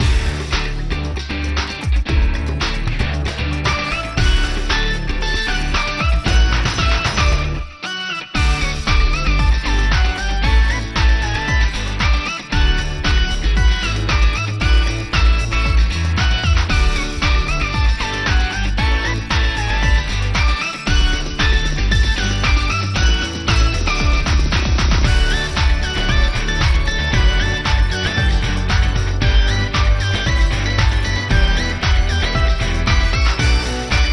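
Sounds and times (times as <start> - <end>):
breezy rhythmic brass beat: 0.0 - 34.1.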